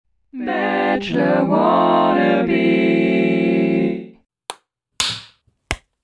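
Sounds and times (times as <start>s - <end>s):
speech: 0.3s - 3.0s
hand clapping: 4.5s - 5.9s.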